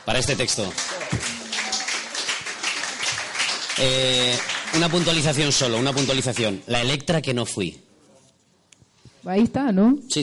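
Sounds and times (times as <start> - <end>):
speech: 0.0 - 1.4, 3.8 - 7.9, 9.2 - 10.2
applause: 0.0 - 6.6.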